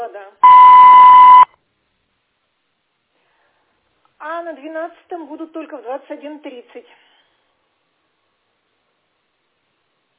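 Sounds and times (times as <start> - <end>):
voicemail beep tone: 0.4 - 1.5
speech: 4.3 - 7.1.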